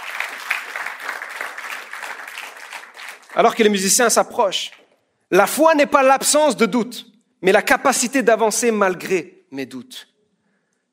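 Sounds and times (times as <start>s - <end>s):
audience applauding: 0.0s - 4.9s
speech: 3.4s - 10.1s.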